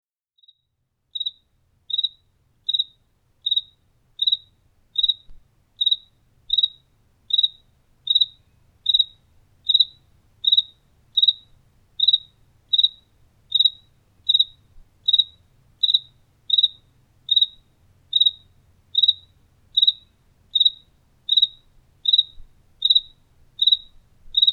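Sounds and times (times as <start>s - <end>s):
cricket chirping: 0.4s - 24.5s.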